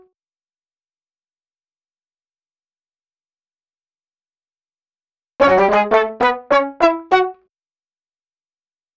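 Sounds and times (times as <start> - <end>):
synthetic horns: 5.4 - 7.3.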